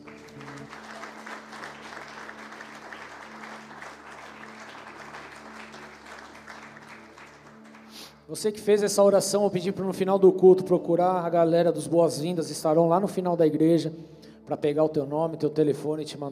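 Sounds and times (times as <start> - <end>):
audience applauding: 0.0 - 8.2
speech: 8.3 - 16.3.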